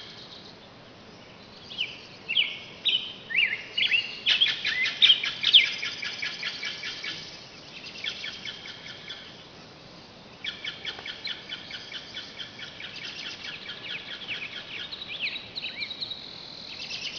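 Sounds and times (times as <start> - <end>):
forest birds in Butano: 0.0 - 17.1.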